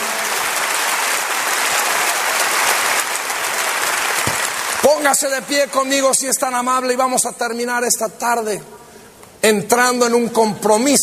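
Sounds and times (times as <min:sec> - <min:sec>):
audience applause: 0:00.0 - 0:05.8
speech: 0:04.8 - 0:11.0.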